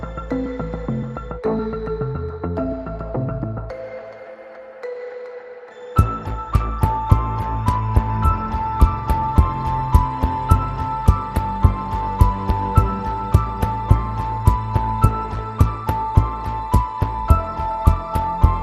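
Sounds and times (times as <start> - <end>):
piano pads: 0.0 - 18.6.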